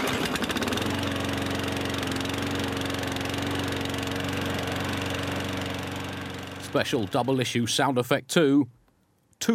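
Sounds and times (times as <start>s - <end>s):
neighbour mowing the lawn: 0.0s - 7.5s
speech: 6.8s - 8.8s, 9.4s - 9.5s.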